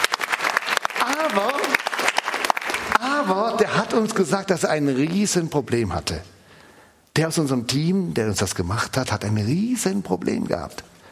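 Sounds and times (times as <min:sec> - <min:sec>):
audience clapping: 0:00.0 - 0:04.2
speech: 0:01.2 - 0:01.5, 0:03.6 - 0:06.4, 0:07.2 - 0:11.0.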